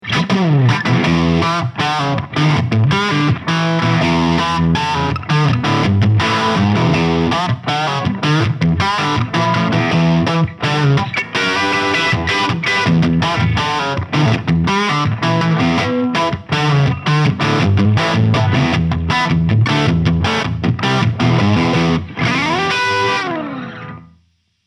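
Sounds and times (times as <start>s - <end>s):
electric guitar crunch through Harley Benton Mighty 15TH humbucker: 0.0s - 24.2s.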